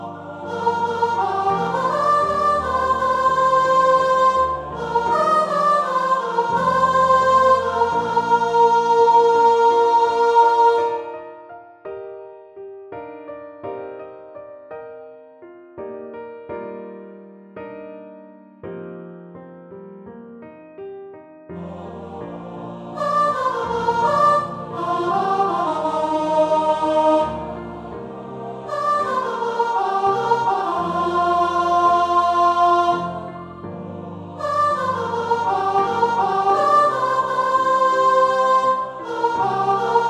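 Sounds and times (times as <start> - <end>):
upper voices: 0.0 - 11.1, 21.6 - 40.0.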